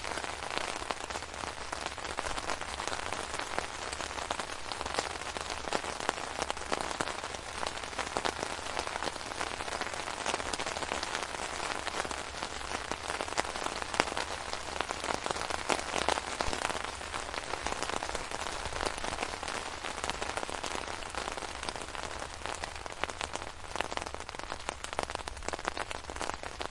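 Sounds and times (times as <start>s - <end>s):
rain on a tent: 0.0s - 26.6s.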